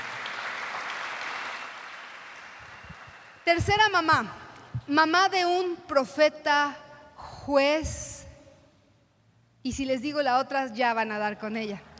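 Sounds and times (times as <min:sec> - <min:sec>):
applause for the team: 0:00.0 - 0:03.5
speech: 0:03.5 - 0:06.8, 0:07.4 - 0:08.1, 0:09.6 - 0:11.9.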